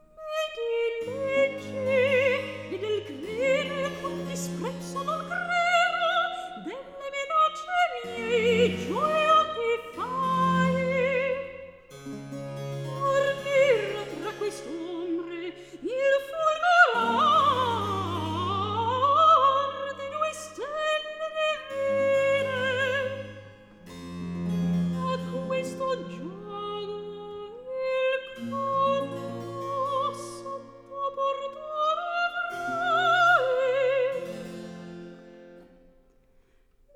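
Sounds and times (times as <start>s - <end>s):
recitative singing: 0.0s - 35.8s.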